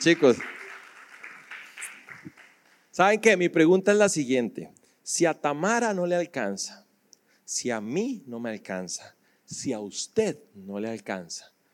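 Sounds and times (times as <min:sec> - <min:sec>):
speech: 0:00.0 - 0:00.6, 0:03.0 - 0:06.8, 0:07.5 - 0:11.5
audience clapping: 0:00.0 - 0:03.0.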